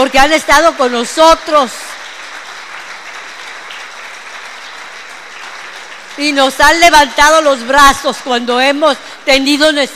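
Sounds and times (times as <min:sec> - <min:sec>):
speech: 0:00.0 - 0:01.9, 0:06.2 - 0:09.9
audience applause: 0:01.6 - 0:06.8.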